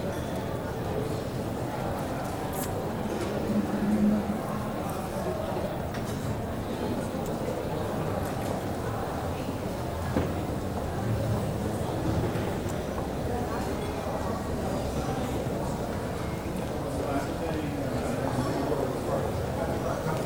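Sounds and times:
murmur of voices in the lobby of Regent Hotel, Hong Kong: 0:00.0 - 0:20.2
low constant rumble: 0:03.1 - 0:05.3.

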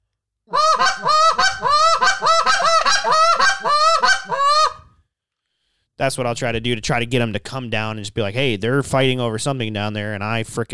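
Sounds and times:
goose call blown with hiccup notes: 0:00.6 - 0:04.8
speech: 0:06.0 - 0:10.7.

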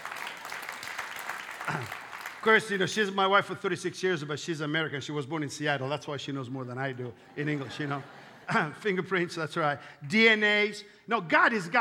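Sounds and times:
audience applause: 0:00.0 - 0:02.8
laughter: 0:01.6 - 0:02.1, 0:07.1 - 0:09.1
speech: 0:01.7 - 0:11.8.

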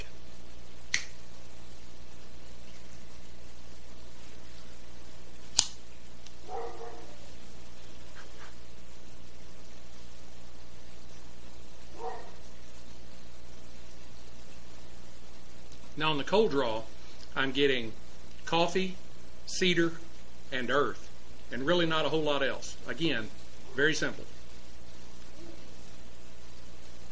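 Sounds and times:
cutter clipping a Herrera Esteli Brazilian cigar: 0:00.9 - 0:01.2, 0:05.5 - 0:06.4
speech: 0:16.0 - 0:24.4.

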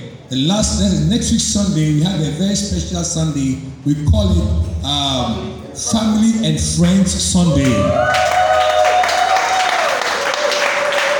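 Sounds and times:
speech: 0:00.3 - 0:08.4
audience clapping: 0:07.6 - 0:11.1.

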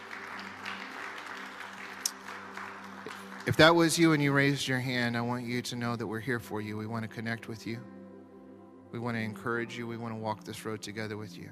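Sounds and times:
audience clapping: 0:00.0 - 0:04.6
speech: 0:03.4 - 0:08.0, 0:08.9 - 0:11.5.

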